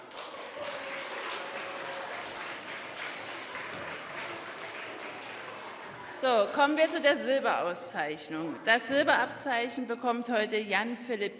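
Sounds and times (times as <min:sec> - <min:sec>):
audience applause: 0:00.0 - 0:06.6
speech: 0:06.2 - 0:11.3.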